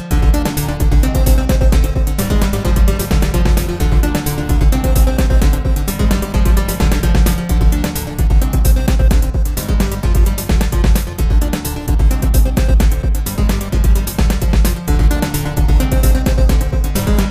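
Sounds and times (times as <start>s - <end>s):
ambience remix: 0.0s - 17.3s.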